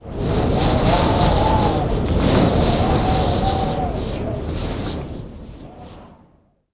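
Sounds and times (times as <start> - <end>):
wind: 0.0 - 6.7.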